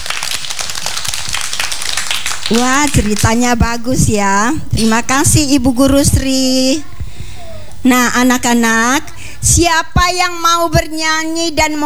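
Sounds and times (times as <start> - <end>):
children clapping hands after a teacher's story: 0.0 - 5.2
speech: 2.5 - 6.9, 7.8 - 11.8.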